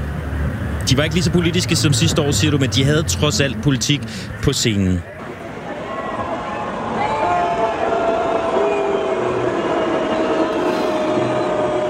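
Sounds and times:
speech: 0:00.9 - 0:05.2
concert crowd roaring: 0:05.2 - 0:11.8
long sustained whistling or chanting: 0:08.3 - 0:11.8.

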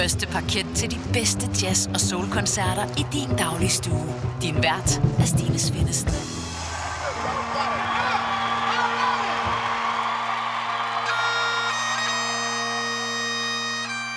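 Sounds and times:
speech: 0:00.0 - 0:06.4
Scottish bagpipes playing: 0:07.3 - 0:14.1.

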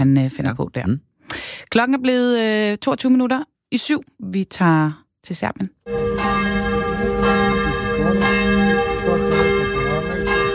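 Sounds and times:
speech: 0:00.0 - 0:01.1, 0:01.7 - 0:06.6
church bells ringing: 0:05.8 - 0:10.5.

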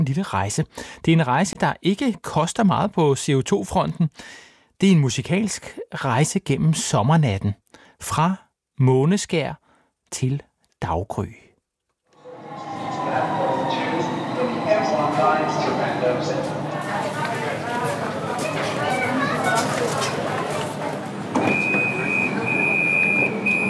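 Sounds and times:
speech: 0:00.0 - 0:11.4
rumble and rattle of a metro carriage in motion heard from inside: 0:12.2 - 0:21.6
crowd chatter: 0:12.2 - 0:23.6.

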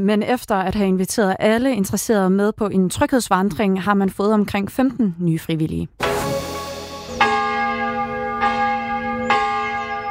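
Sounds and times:
speech: 0:00.0 - 0:06.3
church bells of Durup Church ringing at night: 0:06.0 - 0:10.0.

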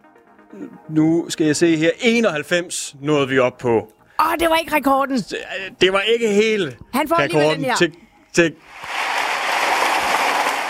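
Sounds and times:
speech: 0:00.5 - 0:08.9
applause in radio studio: 0:08.8 - 0:10.6.

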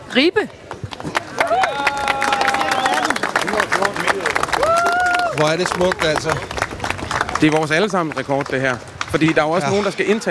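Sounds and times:
speech: 0:00.2 - 0:02.0, 0:05.4 - 0:06.6, 0:07.4 - 0:10.2
audience clapping: 0:00.6 - 0:10.2
crowd whooping and raised voices: 0:01.3 - 0:03.2, 0:04.4 - 0:05.9.

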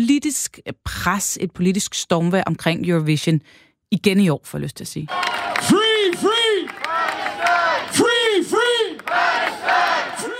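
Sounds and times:
speech: 0:00.0 - 0:06.3
pro-Palestine demonstrators chanting: 0:05.1 - 0:10.3.

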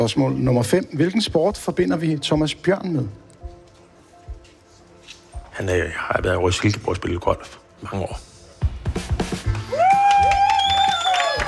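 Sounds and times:
speech: 0:00.0 - 0:03.2, 0:05.6 - 0:08.3
audience applause: 0:09.6 - 0:11.4
cheers and whistles: 0:09.7 - 0:11.4.

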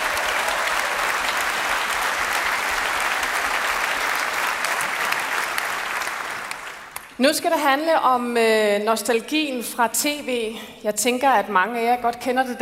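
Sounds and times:
audience applause: 0:00.0 - 0:07.1
speech: 0:07.2 - 0:12.6.

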